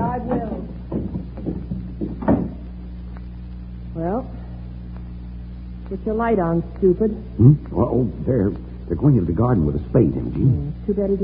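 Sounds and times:
door to the garden opening with knocks and rattles: 0.1 - 2.6
speech: 5.9 - 11.2.

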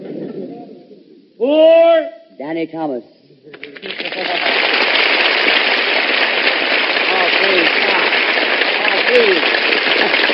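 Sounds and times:
speech: 1.4 - 3.2, 9.1 - 9.6
audience applause: 3.5 - 10.3.

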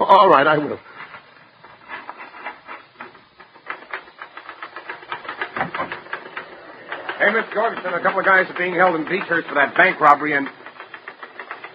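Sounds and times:
speech: 0.1 - 1.0, 7.2 - 10.6
typewriter typing: 3.0 - 11.7.

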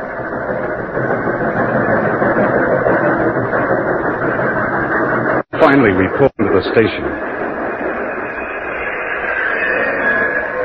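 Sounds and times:
train engine rumbling: 0.0 - 10.6
speech: 5.6 - 7.2.

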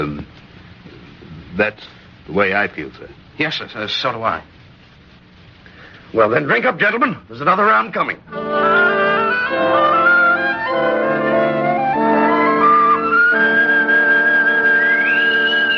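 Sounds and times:
speech: 0.0 - 0.4, 1.6 - 4.6, 6.1 - 8.6
bosun's whistle piping crew aboard: 8.3 - 15.7.

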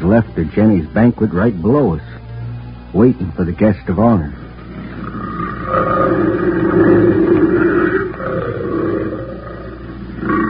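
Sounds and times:
speech: 0.1 - 2.1, 2.9 - 4.4, 5.7 - 7.4
big cat roaring near a trail: 4.8 - 10.4.

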